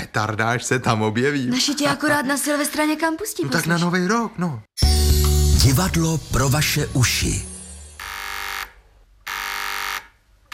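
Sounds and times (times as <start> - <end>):
speech: 0.2 - 7.5
two-way radio call buzzer: 8.0 - 10.5.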